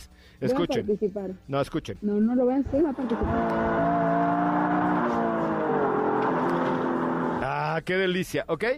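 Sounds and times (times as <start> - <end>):
speech: 0.4 - 4.6, 7.8 - 8.7
Nissan Micra small car driving: 2.8 - 7.5
Nissan Micra tires squealing: 2.9 - 7.5.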